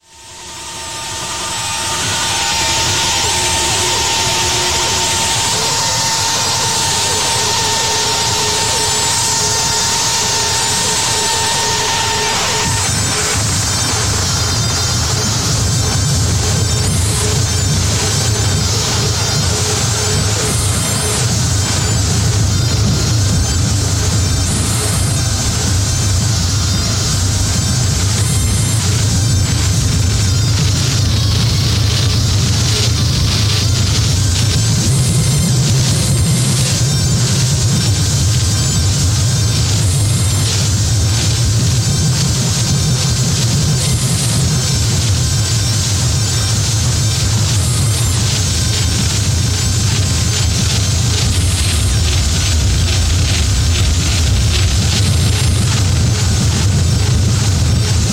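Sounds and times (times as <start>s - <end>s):
noise music jam: 0.0s - 58.1s.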